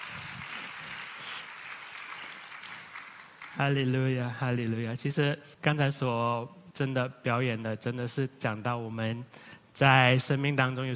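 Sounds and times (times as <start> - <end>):
audience applause: 0.0 - 3.9
speech: 3.6 - 10.9.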